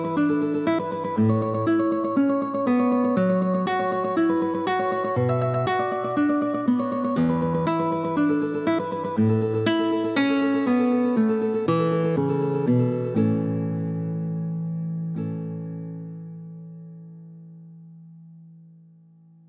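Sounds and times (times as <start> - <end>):
singing cantabile guitar tremolo: 0.0 - 14.8.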